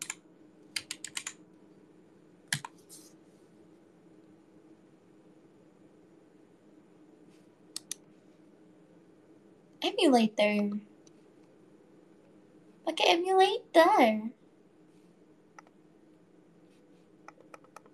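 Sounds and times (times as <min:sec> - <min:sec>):
computer keyboard typing: 0:00.0 - 0:01.4, 0:02.5 - 0:02.8, 0:17.3 - 0:17.9
low steady hum: 0:00.0 - 0:17.9
speech: 0:09.9 - 0:10.9, 0:13.8 - 0:14.4.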